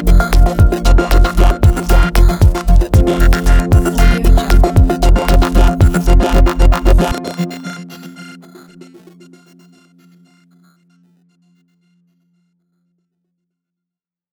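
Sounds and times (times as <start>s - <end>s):
abstract glitch sound: 0.0s - 9.2s.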